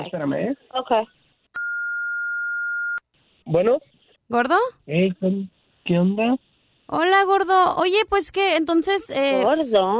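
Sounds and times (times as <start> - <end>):
speech: 0.0 - 1.2, 3.5 - 9.9
phone call-waiting hold tone: 1.6 - 3.0.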